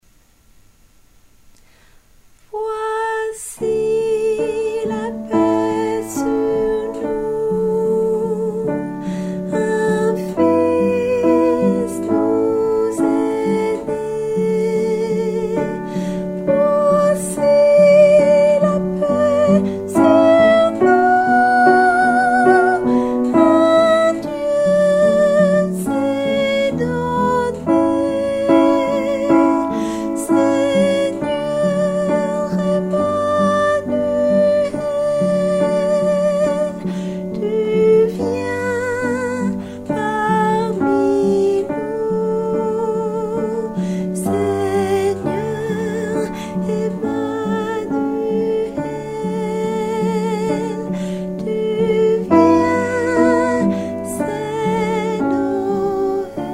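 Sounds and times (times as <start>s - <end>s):
tenor singing: 2.5s - 56.5s.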